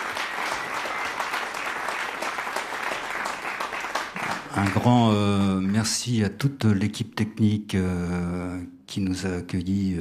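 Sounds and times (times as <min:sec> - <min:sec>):
audience applause: 0:00.0 - 0:05.7
speech: 0:04.6 - 0:10.0.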